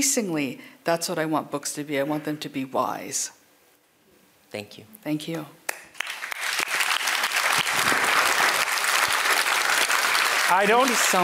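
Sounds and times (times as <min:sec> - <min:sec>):
speech: 0:00.0 - 0:03.4, 0:04.5 - 0:05.6, 0:10.5 - 0:11.2
audience applause: 0:06.0 - 0:11.2.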